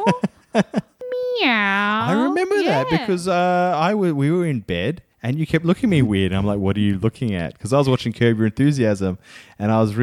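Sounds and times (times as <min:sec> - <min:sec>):
speech: 0:00.0 - 0:00.8, 0:01.4 - 0:10.0
person imitating cat meows: 0:01.1 - 0:03.1.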